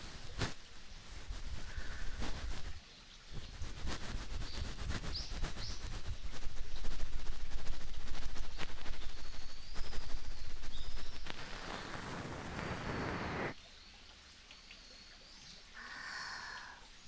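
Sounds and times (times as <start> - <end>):
ear cleaning with a bonten ASMR: 0.0 - 2.8, 3.4 - 13.6.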